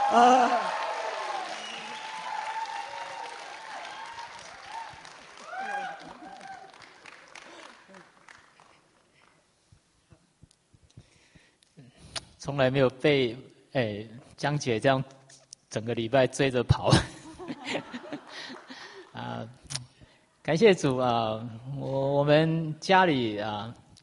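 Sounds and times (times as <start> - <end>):
audience applause: 0.0 - 9.3, 18.0 - 19.1
speech: 0.1 - 0.8, 12.5 - 17.8, 20.5 - 23.8
laughter: 16.9 - 19.1.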